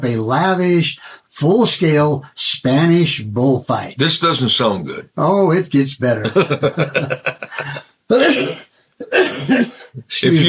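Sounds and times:
speech: 0.0 - 10.4
laughter: 6.2 - 7.9
person coughing: 7.5 - 10.0.

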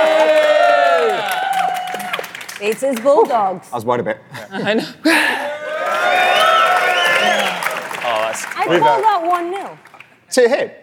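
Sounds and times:
audience cheering and whooping in a live debate at Money20/20 Europe: 0.0 - 2.6, 5.4 - 9.2
speech: 2.6 - 5.5, 8.5 - 10.8.

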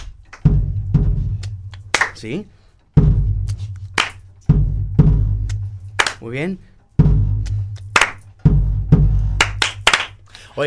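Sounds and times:
rhythmic hand clapping: 0.0 - 10.5
speech: 2.2 - 3.1, 6.2 - 6.7.

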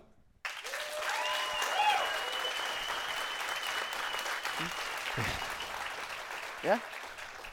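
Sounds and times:
audience clapping: 0.4 - 7.5
speech: 4.6 - 5.5, 6.6 - 7.5.

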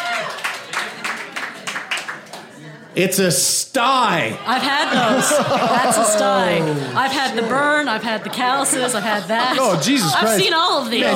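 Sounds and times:
audience applause: 0.0 - 2.7, 4.6 - 7.2
speech: 3.0 - 11.1
laughter: 4.1 - 11.1.

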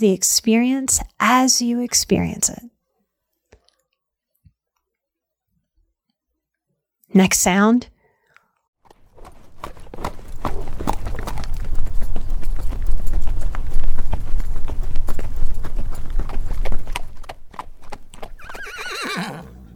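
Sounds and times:
speech: 0.0 - 2.7, 7.1 - 7.9
horse hooves galloping on the ground: 8.8 - 19.7
horse whinnying: 18.3 - 19.7.

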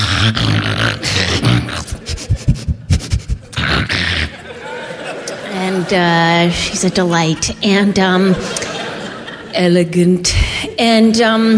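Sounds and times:
person imitating a dog: 0.0 - 4.4
laughter: 0.8 - 9.8
speech: 5.9 - 8.6, 9.5 - 11.5.

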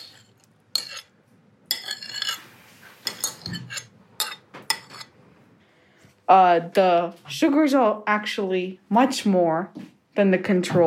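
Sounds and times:
gently stirring tomatoes in a strainer: 0.0 - 5.2
speech: 6.3 - 10.8.

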